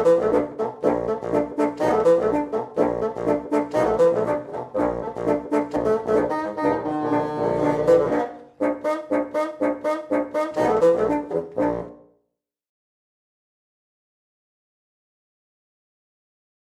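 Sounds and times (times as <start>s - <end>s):
four bassoons playing: 0.0s - 12.1s.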